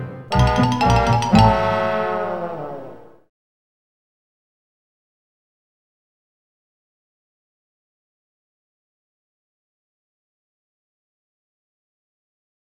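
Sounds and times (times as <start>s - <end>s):
in-game music: 0.3s - 2.6s.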